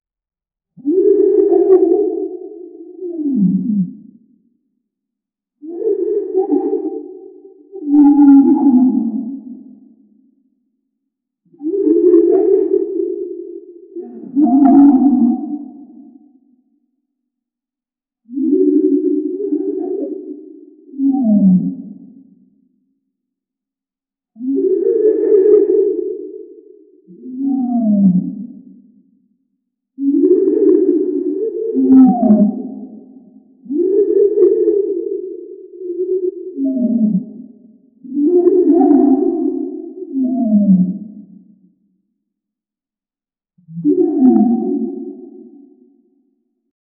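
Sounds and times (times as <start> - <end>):
fictional deep sea whale creature call: 0.8 - 4.5, 5.6 - 10.2, 11.6 - 16.7, 18.3 - 22.5, 24.4 - 29.0, 30.0 - 41.7, 43.6 - 46.4.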